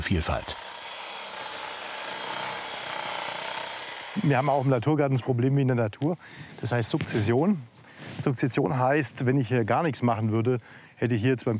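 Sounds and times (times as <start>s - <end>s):
speech: 0.0s - 0.7s, 4.2s - 11.5s
hedge trimmer cutting back spreading plants in a natural garden: 0.0s - 4.8s.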